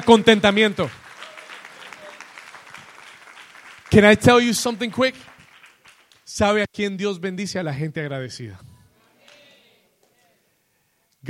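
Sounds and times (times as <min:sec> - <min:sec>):
speech: 0:00.0 - 0:01.0, 0:03.9 - 0:05.3, 0:06.3 - 0:08.7
audience applause: 0:00.0 - 0:06.2.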